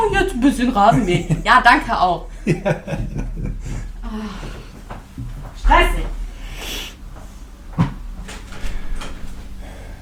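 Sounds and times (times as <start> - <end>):
laughter: 0.0 - 4.7
speech: 0.4 - 3.2, 4.1 - 4.5, 5.7 - 6.2
faint shuffling and small knocks: 3.5 - 9.8
door closing with a solid thump: 7.8 - 9.8.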